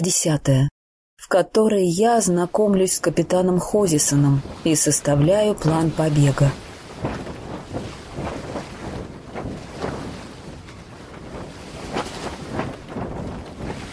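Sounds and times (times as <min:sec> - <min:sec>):
speech: 0:00.0 - 0:07.9
strong wind at sea filling sails: 0:03.8 - 0:13.9.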